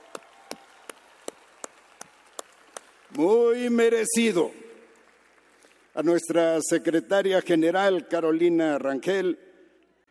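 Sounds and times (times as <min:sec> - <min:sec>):
audience applause: 0:00.0 - 0:06.4
speech: 0:03.1 - 0:04.6, 0:06.0 - 0:09.5.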